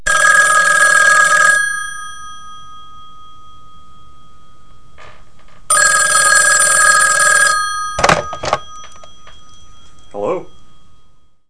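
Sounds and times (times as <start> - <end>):
telephone: 0.1 - 2.4, 5.0 - 10.0.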